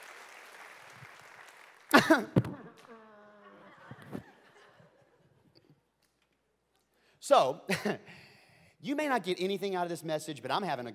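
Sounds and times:
audience applauding: 0:00.0 - 0:03.0
laughter: 0:02.0 - 0:05.6
speech: 0:02.1 - 0:02.6, 0:07.3 - 0:08.2, 0:08.8 - 0:10.9.

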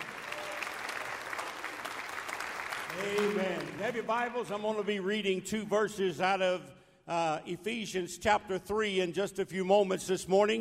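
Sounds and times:
audience hand clapping: 0:00.0 - 0:04.3
speech: 0:03.0 - 0:10.5.

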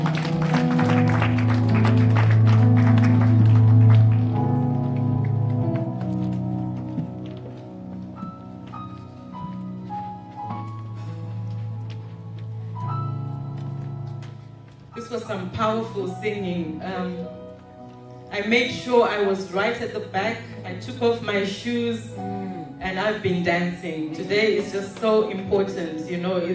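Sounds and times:
crowd clapping: 0:00.0 - 0:08.2
sustained organ-like keyboard chords: 0:00.0 - 0:26.5
speech: 0:15.6 - 0:17.4, 0:18.3 - 0:26.5.

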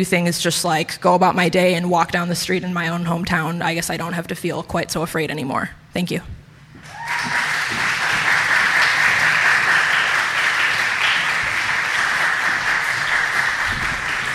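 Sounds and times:
speech: 0:00.0 - 0:06.4
audience applause: 0:06.8 - 0:14.3.

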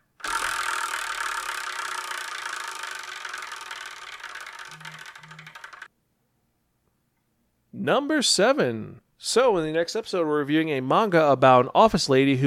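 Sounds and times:
prize wheel spun to pick the next manga: 0:00.0 - 0:05.9
speech: 0:07.8 - 0:12.4.

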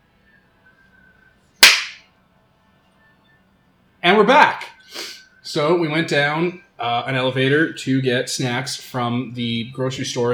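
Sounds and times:
single sharp hand clap to restart the recording: 0:01.6 - 0:02.0
speech: 0:04.0 - 0:10.3.

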